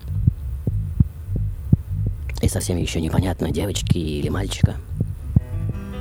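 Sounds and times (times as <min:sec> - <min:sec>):
rapid heartbeat: 0:00.0 - 0:02.4, 0:04.7 - 0:05.9
constant deep droning hum: 0:00.0 - 0:05.9
speech: 0:02.4 - 0:04.9.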